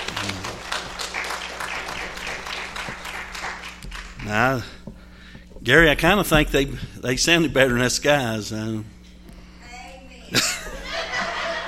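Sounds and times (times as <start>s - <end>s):
laughter: 0.0s - 0.9s, 10.3s - 11.6s
audience applause: 0.0s - 4.6s
speech: 4.3s - 4.8s, 5.6s - 8.9s.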